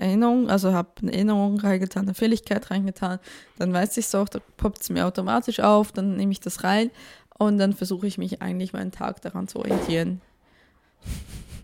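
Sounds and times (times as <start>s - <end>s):
speech: 0.2s - 10.3s, 11.0s - 11.6s
cat knocking laundry basket off bed: 9.7s - 10.0s.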